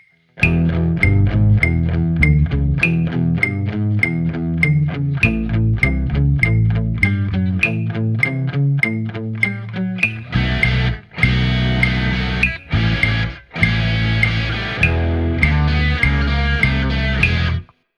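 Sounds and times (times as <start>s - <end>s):
drum kit: 0.4s - 9.0s, 10.0s - 17.6s.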